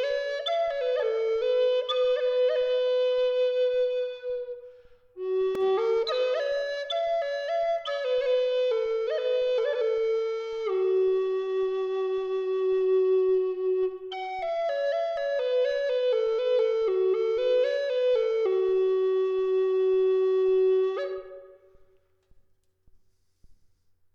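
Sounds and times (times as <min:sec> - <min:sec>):
maple branch flute in G tuned to 432 Hz: 0:00.0 - 0:22.2.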